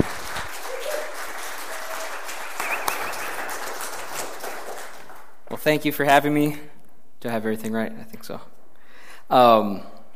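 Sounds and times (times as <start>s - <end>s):
audience applause welcoming a speaker: 0.0s - 5.4s
speech: 5.6s - 8.5s, 9.3s - 9.9s.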